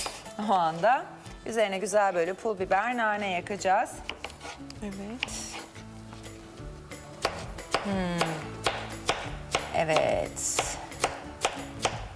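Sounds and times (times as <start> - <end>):
knife chopping vegetables into cubes on a cutting board: 0.0 - 0.3, 4.0 - 5.7, 7.2 - 12.1
speech: 0.4 - 5.4, 7.8 - 8.5, 9.8 - 10.6.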